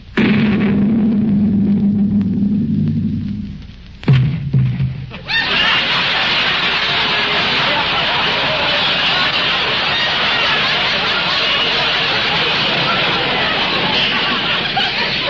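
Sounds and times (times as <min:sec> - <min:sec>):
low hum: 0:00.0 - 0:06.8
cannon shot fired across a ship's bow, radio drama effect: 0:00.2 - 0:03.4, 0:04.0 - 0:05.2
laughter: 0:05.2 - 0:15.2.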